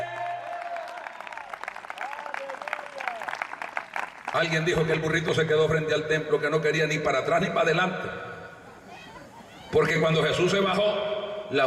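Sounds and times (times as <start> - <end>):
audience applauding: 0.0 - 4.7
speech: 4.4 - 8.3, 9.7 - 11.6.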